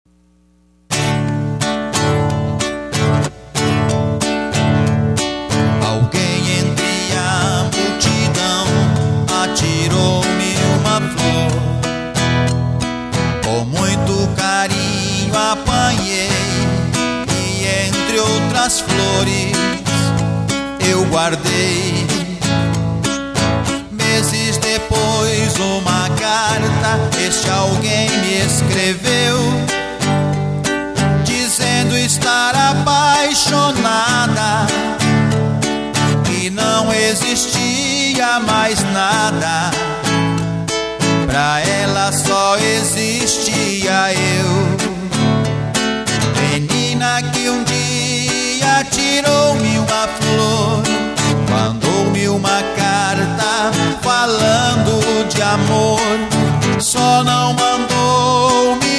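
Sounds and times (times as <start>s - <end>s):
acoustic guitar: 0.1s - 58.9s
voice: 1.9s - 12.4s, 13.4s - 58.9s.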